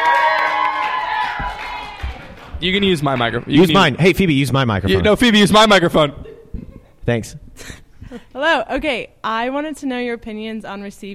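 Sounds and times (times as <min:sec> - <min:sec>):
crowd cheering and clapping at a live youth event in Steubenville: 0:00.0 - 0:04.0
speech: 0:02.6 - 0:06.3, 0:07.1 - 0:11.1.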